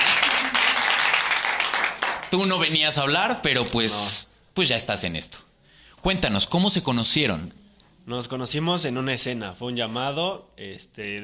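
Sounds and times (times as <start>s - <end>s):
applause: 0.0s - 2.5s
speech: 2.3s - 5.4s, 6.0s - 11.2s.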